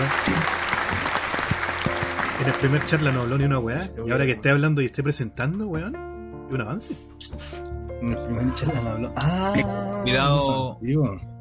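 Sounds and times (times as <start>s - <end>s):
audience applause: 0.0s - 3.6s
speech: 2.4s - 11.3s.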